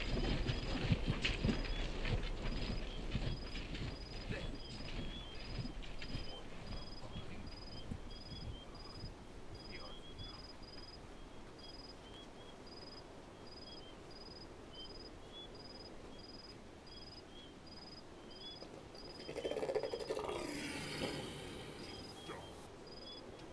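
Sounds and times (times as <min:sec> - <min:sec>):
orc camp ambience in the desert at night: 0:00.0 - 0:11.9, 0:18.6 - 0:23.0.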